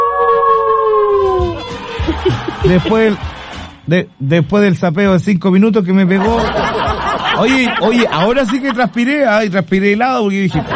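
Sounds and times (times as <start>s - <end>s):
person imitating wolf howl: 0.0s - 1.6s
person laughing and chuckling: 2.0s - 3.1s, 6.2s - 9.0s, 10.5s - 10.7s
speech: 2.6s - 6.8s, 7.4s - 10.7s.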